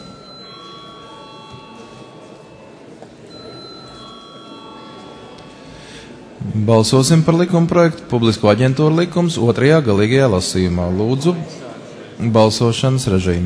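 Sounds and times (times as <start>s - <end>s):
parliament session bell: 0.0s - 7.5s
speech: 6.4s - 13.4s.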